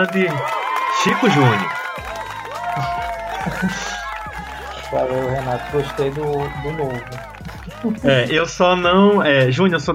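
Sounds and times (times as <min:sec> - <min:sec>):
speech: 0:00.0 - 0:02.1, 0:02.8 - 0:04.0, 0:04.9 - 0:09.9
audience applause and cheering: 0:00.0 - 0:09.4
laughter: 0:01.0 - 0:08.6.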